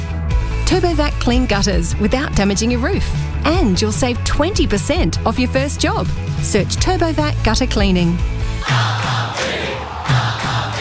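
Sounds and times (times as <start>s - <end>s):
speech: 0.7s - 9.1s
crowd shouting and cheering in a roofing company advert: 8.5s - 10.7s.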